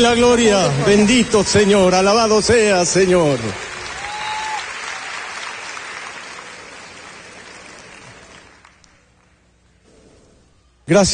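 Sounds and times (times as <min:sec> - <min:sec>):
speech: 0:00.0 - 0:03.7, 0:10.9 - 0:11.1
crowd applause: 0:00.7 - 0:09.4.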